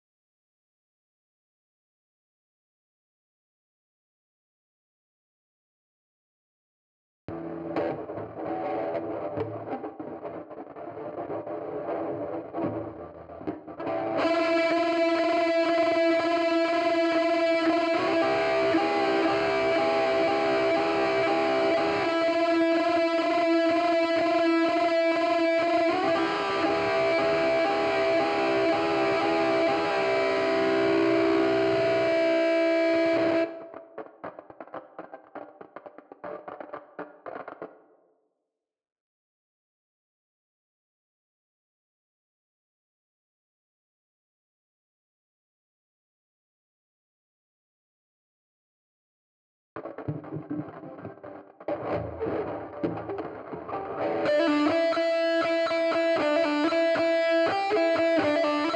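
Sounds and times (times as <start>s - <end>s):
guitar: 7.3s - 38.1s, 49.8s - 58.7s.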